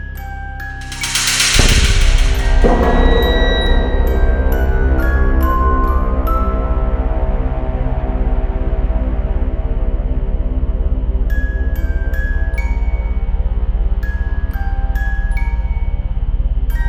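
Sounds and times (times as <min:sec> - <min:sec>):
scary music: 0:00.8 - 0:16.7.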